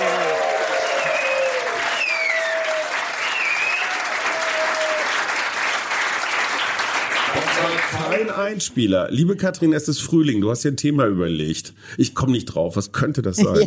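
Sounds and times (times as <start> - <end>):
nightclub audience clapping and cheering: 0.0 - 8.6
whoops and whistles: 0.7 - 4.1
speech: 8.2 - 13.6.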